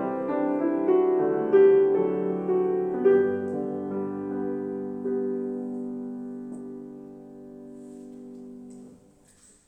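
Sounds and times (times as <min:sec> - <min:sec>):
piano improvisation: 0:00.0 - 0:09.6.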